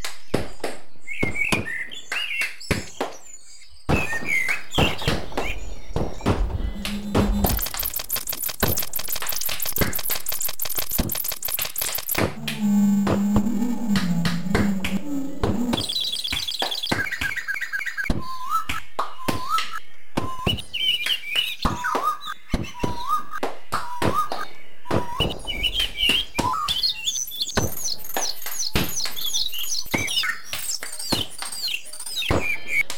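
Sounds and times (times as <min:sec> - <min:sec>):
birds: 0:00.0 - 0:12.4, 0:13.9 - 0:32.9
welding: 0:06.2 - 0:12.8.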